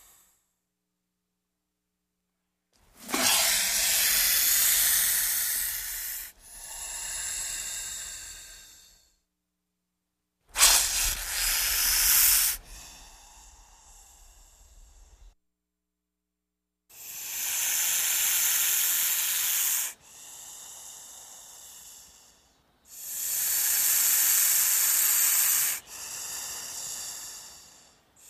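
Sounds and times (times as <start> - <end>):
snake hissing: 2.9 - 9.2, 10.5 - 15.4, 16.9 - 28.2.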